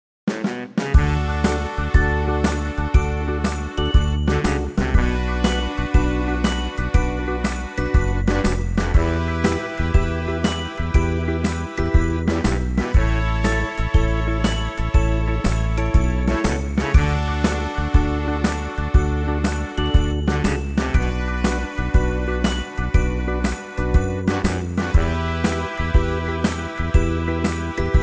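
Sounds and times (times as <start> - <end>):
swing music: 0.3 - 28.0.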